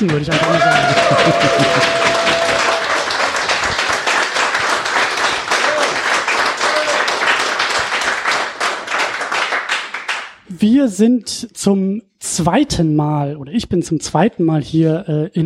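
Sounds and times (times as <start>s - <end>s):
speech: 0.0s - 2.6s, 10.6s - 15.4s
laughter: 0.0s - 4.2s
audience clapping at the Kaijukon convention in Uelzen: 0.0s - 10.5s.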